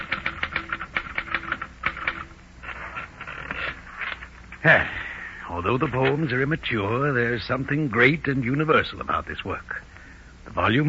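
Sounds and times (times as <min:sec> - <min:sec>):
typewriter keys clattering: 0:00.0 - 0:02.3
mechanical rustle: 0:00.0 - 0:04.6
speech: 0:04.6 - 0:09.9, 0:10.6 - 0:10.8.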